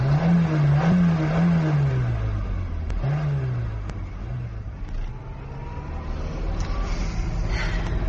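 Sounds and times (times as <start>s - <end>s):
car engine revving under load: 0.0s - 8.0s
road rumble: 0.0s - 8.0s.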